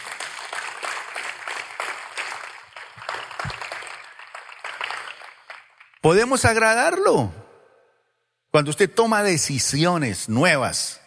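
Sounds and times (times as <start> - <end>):
crowd applauding: 0.0 - 6.6
speech: 6.0 - 7.4, 8.5 - 11.0.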